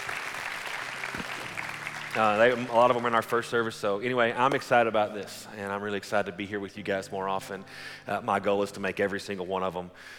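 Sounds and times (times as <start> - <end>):
audience applause: 0.0 - 3.7
speech: 2.2 - 10.1.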